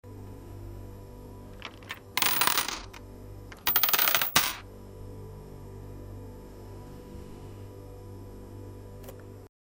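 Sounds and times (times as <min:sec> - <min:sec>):
money deposit sound: 0:01.6 - 0:04.6.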